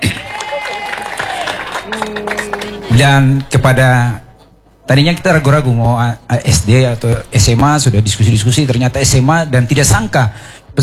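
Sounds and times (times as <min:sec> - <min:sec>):
audience applauding: 0:00.0 - 0:03.8
speech: 0:01.9 - 0:02.4, 0:03.0 - 0:04.2, 0:04.9 - 0:10.8.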